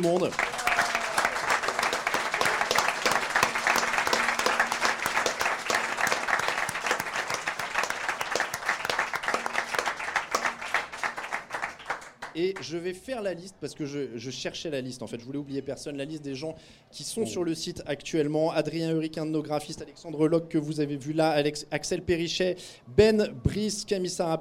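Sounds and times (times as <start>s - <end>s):
speech: 0.0s - 0.6s, 12.4s - 24.3s
audience applause: 0.0s - 12.3s.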